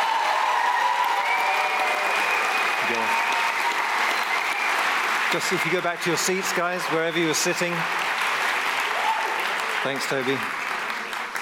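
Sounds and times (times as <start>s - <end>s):
audience applause: 0.0s - 11.4s
speech: 5.3s - 8.1s, 9.8s - 10.6s.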